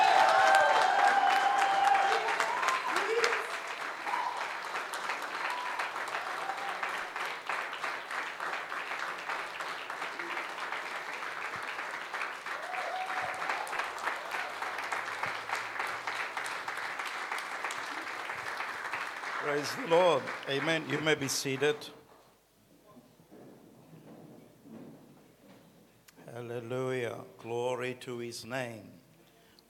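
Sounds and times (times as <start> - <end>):
church congregation applauding their pastor: 0.0 - 22.0
speech: 19.6 - 22.0, 28.0 - 29.0.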